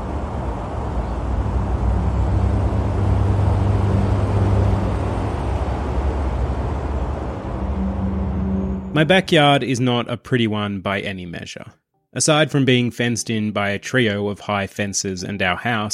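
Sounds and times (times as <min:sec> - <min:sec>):
road traffic noise: 0:00.0 - 0:09.4
speech: 0:09.0 - 0:15.9.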